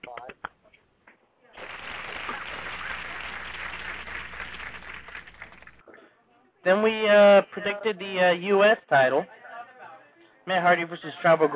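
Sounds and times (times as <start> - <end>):
small group clapping: 0.0 - 0.6, 1.6 - 5.8
speech: 6.6 - 9.4, 10.4 - 11.5.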